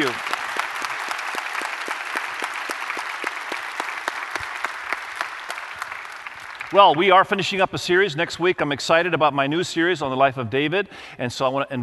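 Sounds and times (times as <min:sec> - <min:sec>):
audience applause: 0:00.0 - 0:07.2
speech: 0:06.7 - 0:11.8.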